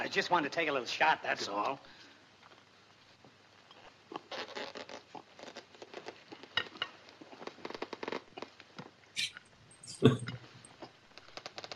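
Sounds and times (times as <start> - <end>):
speech: 0.1 - 2.0
long cork worked out of a champagne bottle: 9.2 - 10.4.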